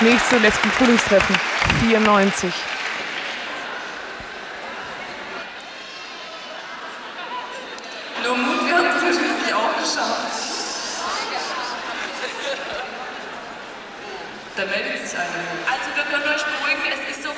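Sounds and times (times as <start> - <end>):
laughter: 0.0 - 2.6, 3.2 - 16.8
speech: 0.0 - 2.8
audience applause at a plenary meeting: 0.0 - 16.7.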